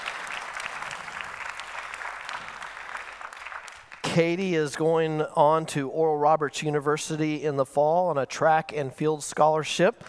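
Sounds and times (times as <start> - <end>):
audience applause: 0.0 - 4.4
speech: 4.2 - 10.0.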